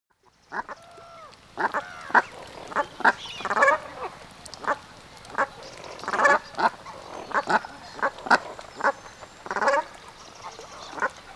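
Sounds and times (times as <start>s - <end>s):
calling flock of Brent geese honking: 0.5s - 11.3s.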